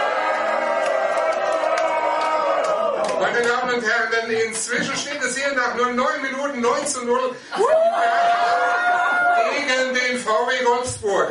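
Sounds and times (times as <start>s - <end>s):
large stadium crowd cheering goals: 0.0s - 3.7s, 7.5s - 9.7s
speech: 3.2s - 11.2s.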